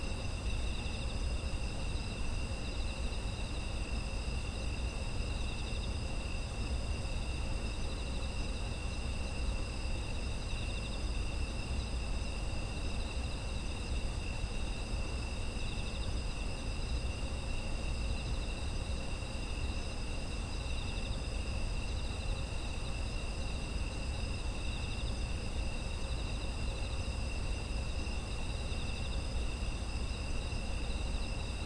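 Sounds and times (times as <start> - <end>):
autumn insects chirping: 0.0 - 31.6.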